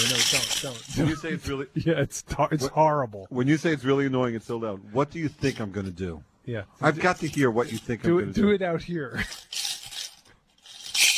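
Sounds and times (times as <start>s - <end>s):
coins rattling: 0.0s - 1.0s, 9.2s - 11.1s
speech: 0.1s - 9.7s.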